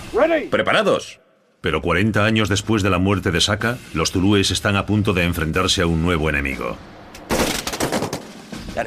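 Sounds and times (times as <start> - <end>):
speech: 0.2 - 7.0
gunfire volley: 7.3 - 8.7.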